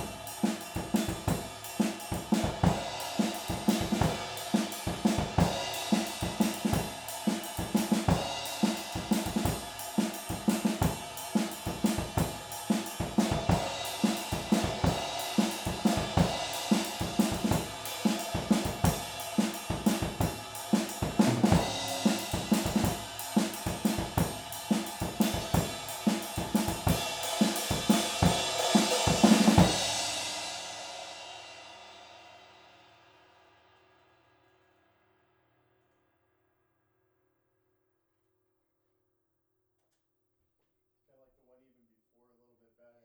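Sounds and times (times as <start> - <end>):
drums: 0.0 - 33.8.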